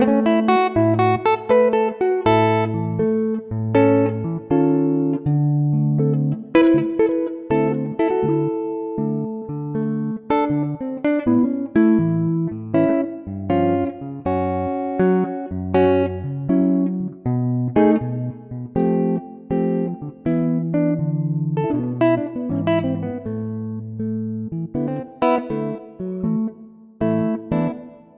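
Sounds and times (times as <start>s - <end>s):
electric guitar in A: 0.0s - 28.1s.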